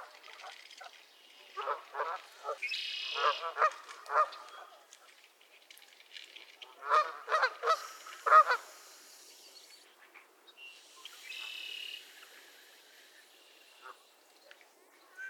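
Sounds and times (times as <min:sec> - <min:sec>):
geese honking: 0:01.6 - 0:04.5, 0:06.8 - 0:08.7.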